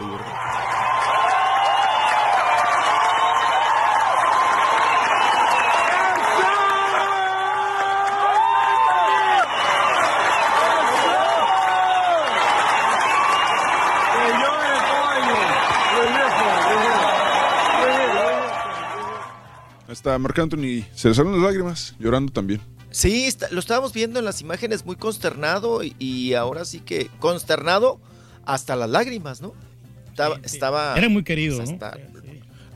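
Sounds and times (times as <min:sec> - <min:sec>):
concert crowd cheering and chanting: 0:00.0 - 0:19.8
speech: 0:20.2 - 0:29.6, 0:30.2 - 0:32.2.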